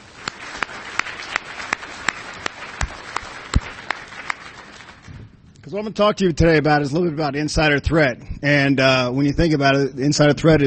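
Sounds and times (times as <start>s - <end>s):
round of applause: 0.0s - 5.2s
speech: 5.7s - 10.6s.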